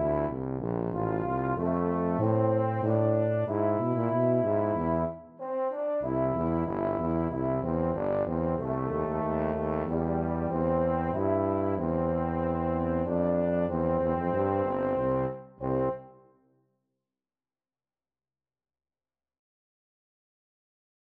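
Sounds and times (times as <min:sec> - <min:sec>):
tuba duet: 0:00.0 - 0:16.2.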